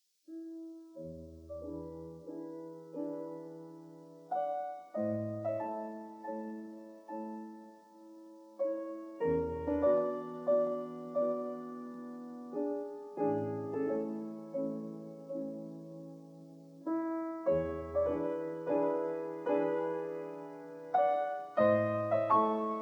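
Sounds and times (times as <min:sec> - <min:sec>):
classical prelude in A major: 0:00.3 - 0:22.8.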